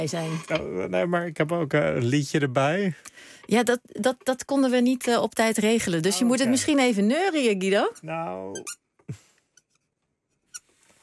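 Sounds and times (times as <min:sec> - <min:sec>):
speech: 0:00.0 - 0:09.2
marker pen squeaking across a hard tile surface: 0:08.5 - 0:08.8, 0:10.4 - 0:10.8.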